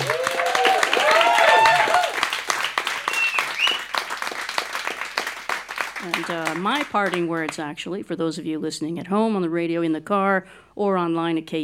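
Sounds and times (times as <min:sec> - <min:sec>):
audience cheering: 0:00.0 - 0:04.9
audience applause after live performance: 0:00.0 - 0:07.6
shrill whistles: 0:02.9 - 0:04.0
speech: 0:06.3 - 0:11.6.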